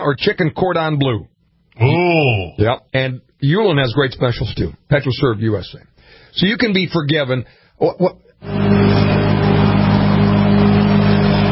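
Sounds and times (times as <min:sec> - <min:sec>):
speech: 0:00.0 - 0:09.0
lawn mower engine droning outside window: 0:08.4 - 0:11.5.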